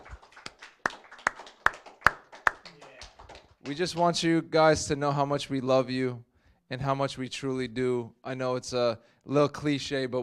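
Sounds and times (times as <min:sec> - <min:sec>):
audience applause of sharp distinct hand claps: 0:00.0 - 0:04.2
speech: 0:03.6 - 0:10.2.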